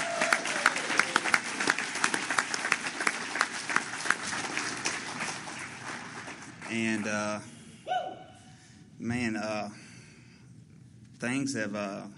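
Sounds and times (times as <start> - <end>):
audience applause: 0.0 - 7.2
speech: 6.7 - 7.5, 9.0 - 9.8, 11.2 - 12.1.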